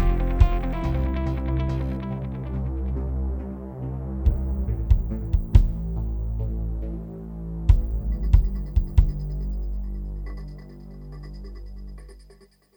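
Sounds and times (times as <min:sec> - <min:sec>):
electro acoustic pop suspense music: 0:00.0 - 0:02.7, 0:04.3 - 0:07.0, 0:07.7 - 0:09.8.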